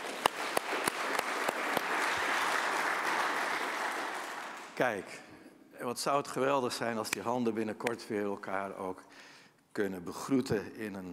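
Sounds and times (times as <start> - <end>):
crowd clapping hands in applause: 0.0 - 4.8
sharp evenly spaced claps: 0.0 - 4.8
speech: 4.8 - 11.1.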